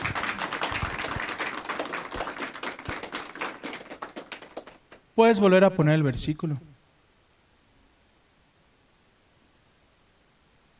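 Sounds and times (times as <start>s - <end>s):
audience applause: 0.0s - 5.0s
speech: 5.2s - 6.7s.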